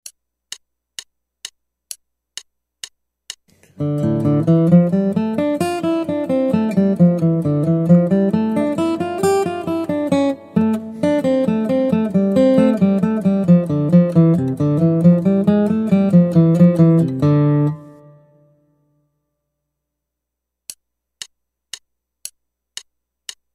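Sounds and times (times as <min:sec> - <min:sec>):
guitar: 0:03.5 - 0:18.6.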